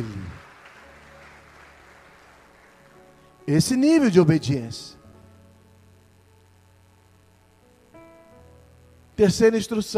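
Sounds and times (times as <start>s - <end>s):
audience applauding: 0.0s - 3.4s
faint sustained low tones: 2.6s - 9.8s
speech: 3.5s - 5.0s, 9.2s - 9.9s.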